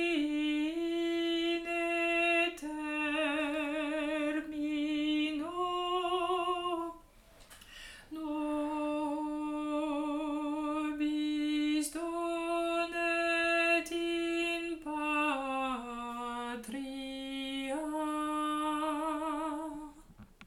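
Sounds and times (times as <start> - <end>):
alto singing a hymn: 0.0 - 7.0, 8.1 - 20.0.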